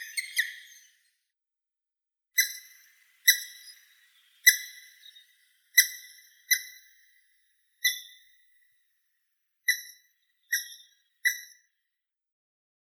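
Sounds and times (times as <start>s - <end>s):
grey-headed woodpecker Picus canus: 0.0s - 1.0s, 2.4s - 7.1s, 7.8s - 8.4s, 9.7s - 11.6s.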